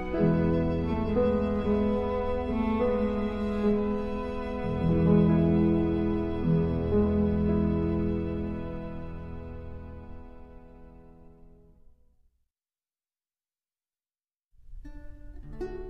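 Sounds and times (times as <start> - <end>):
piano trio: 0.0 - 11.7.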